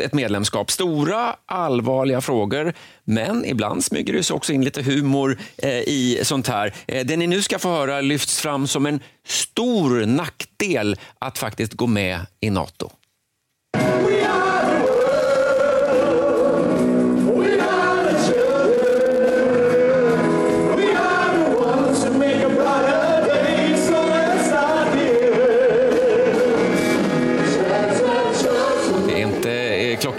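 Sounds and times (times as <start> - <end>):
speech: 0.0 - 13.0
group of ministers singing off-key in chorus: 13.8 - 29.5.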